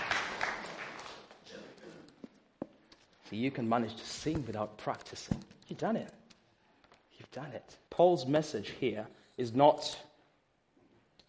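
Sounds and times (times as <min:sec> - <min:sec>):
audience clapping: 0:00.0 - 0:01.5
speech: 0:03.3 - 0:06.2, 0:07.4 - 0:10.1.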